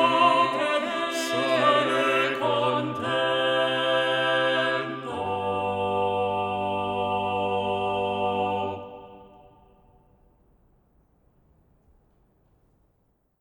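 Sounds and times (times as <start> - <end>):
choral backing track without the soprano part: 0.0 - 10.4.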